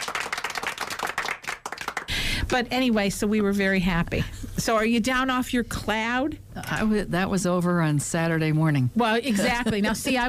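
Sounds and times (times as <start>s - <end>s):
clapping sound effect: 0.0s - 2.1s
speech: 2.4s - 10.2s.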